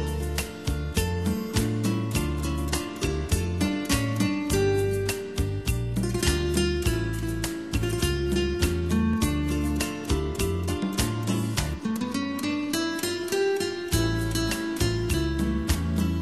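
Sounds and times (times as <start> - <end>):
guitar playing a jazz standard: 0.0 - 16.2.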